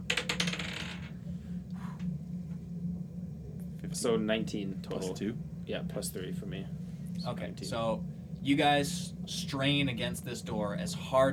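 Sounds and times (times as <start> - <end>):
d20 die rolling on a table: 0.0 - 1.2
low hum: 0.0 - 11.3
speech: 3.9 - 11.3.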